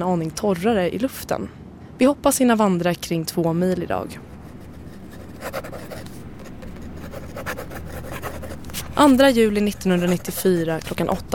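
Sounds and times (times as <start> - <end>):
speech: 0.0 - 4.3, 9.0 - 11.3
pen scratching across paper writing a diary entry: 4.3 - 11.3.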